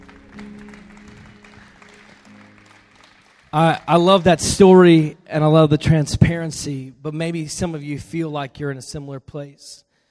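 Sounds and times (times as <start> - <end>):
crowd audience applause: 0.0 - 4.7
speech: 3.5 - 9.9.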